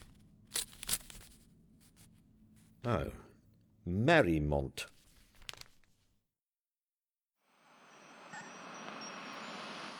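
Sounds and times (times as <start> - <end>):
paper envelope being torn open: 0.0 - 1.4, 5.1 - 5.9
speech: 2.8 - 3.2, 3.8 - 4.9.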